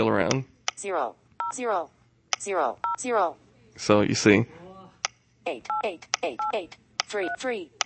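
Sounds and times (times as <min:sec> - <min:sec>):
speech: 0:00.0 - 0:04.6, 0:05.5 - 0:07.8
phone keypad touch tones: 0:05.7 - 0:07.8.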